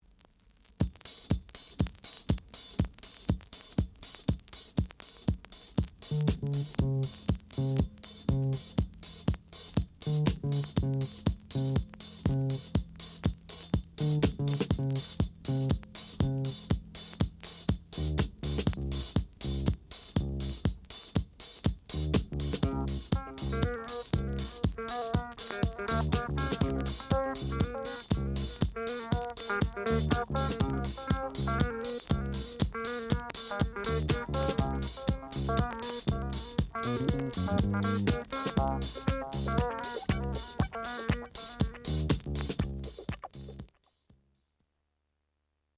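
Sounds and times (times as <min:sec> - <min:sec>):
disco dub music: 0:00.8 - 0:43.7.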